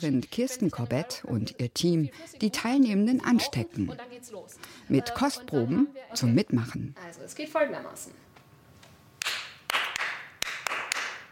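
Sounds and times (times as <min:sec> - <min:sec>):
speech: 0:00.0 - 0:08.3
group clapping in rhythm: 0:09.2 - 0:11.3.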